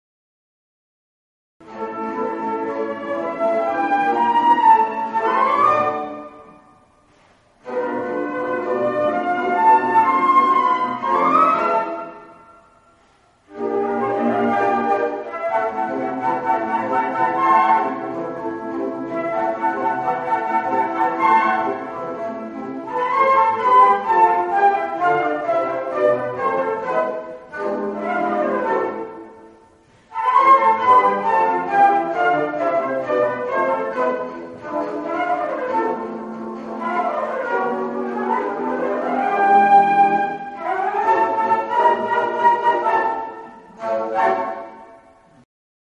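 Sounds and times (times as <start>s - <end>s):
flute in concert: 1.6s - 45.4s.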